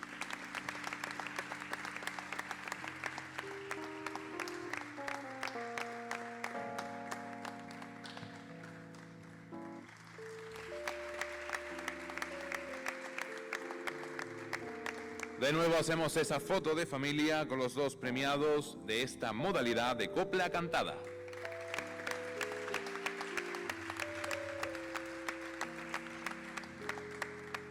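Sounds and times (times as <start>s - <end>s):
crowd applauding: 0.0s - 16.4s, 21.0s - 27.6s
sustained instrumental music: 0.0s - 17.4s, 18.1s - 27.6s
speech: 15.4s - 21.1s.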